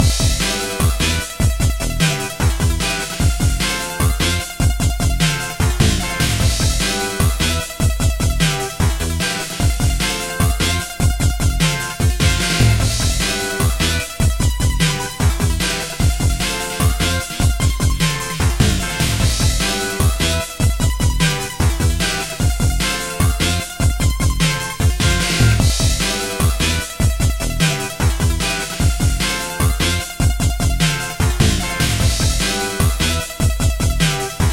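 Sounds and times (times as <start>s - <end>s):
cyberpunk normal battle game music: 0.0s - 34.5s.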